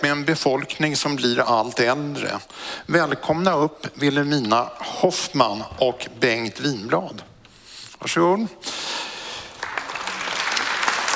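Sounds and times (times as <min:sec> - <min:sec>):
speech: 0:00.0 - 0:07.3, 0:08.0 - 0:08.9
audience applause: 0:09.4 - 0:11.1.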